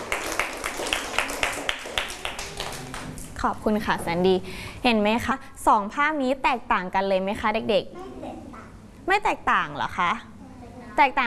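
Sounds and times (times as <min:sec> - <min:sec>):
children clapping for a classmate: 0:00.0 - 0:03.4
speech: 0:03.4 - 0:08.0, 0:09.1 - 0:10.3, 0:11.0 - 0:11.2.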